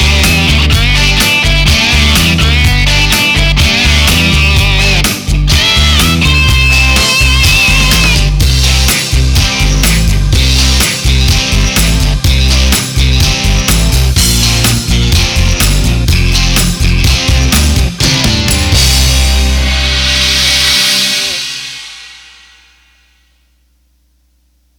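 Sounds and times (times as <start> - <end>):
rock backing track on Roland BK-7m: 0.0 - 23.0.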